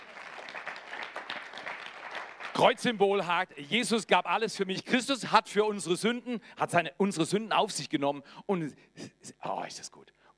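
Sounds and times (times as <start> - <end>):
audience clapping: 0.0 - 3.3
speech: 2.6 - 10.1.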